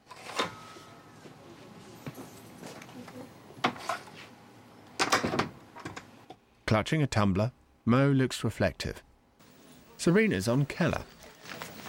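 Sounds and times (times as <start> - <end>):
door opening and shutting: 5.0 - 6.1
speech: 6.7 - 9.1, 10.0 - 11.6
faint hiss: 7.4 - 11.8.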